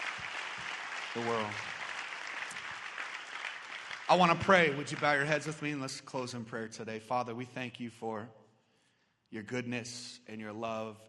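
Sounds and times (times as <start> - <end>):
audience applause: 0.0 - 5.7
speech: 1.2 - 1.7, 4.1 - 8.4, 9.3 - 11.0.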